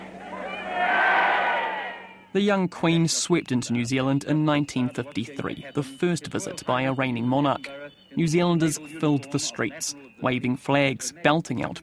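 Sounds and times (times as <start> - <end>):
crowd cheering a welcome: 0.0 - 2.3
speech: 2.3 - 11.8.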